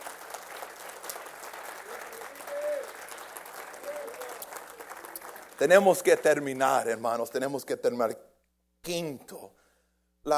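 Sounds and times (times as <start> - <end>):
audience applause: 0.0 - 6.6
speech: 5.6 - 9.6.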